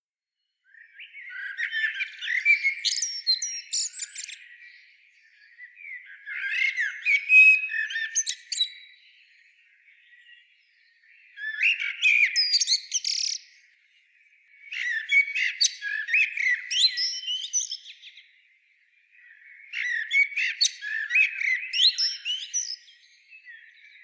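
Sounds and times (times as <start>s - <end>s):
common blackbird singing: 0.6s - 24.0s.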